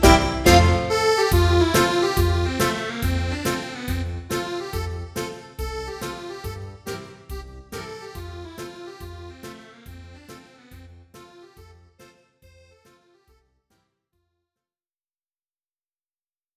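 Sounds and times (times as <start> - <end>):
American folk dance music: 0.0 - 12.1.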